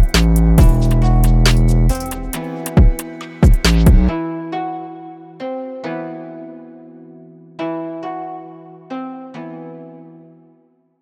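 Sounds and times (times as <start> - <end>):
music beat: 0.0 - 4.2.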